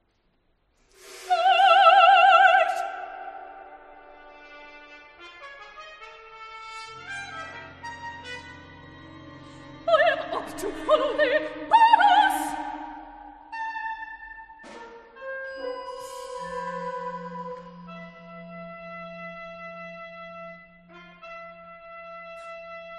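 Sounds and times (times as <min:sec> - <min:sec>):
soprano singing: 0:01.1 - 0:04.4, 0:09.8 - 0:14.4, 0:15.2 - 0:20.2
orchestra playing: 0:03.8 - 0:11.9, 0:14.7 - 0:22.9.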